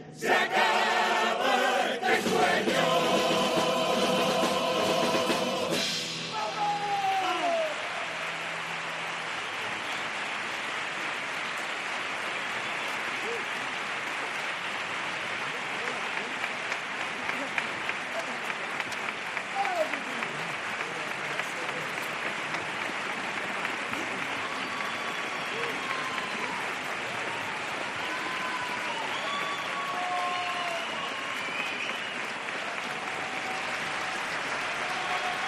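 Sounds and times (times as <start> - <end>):
sustained theatre audience applause: 0.3 - 35.4
scattered shouts from theatre crowd: 6.3 - 8.4, 24.2 - 35.4.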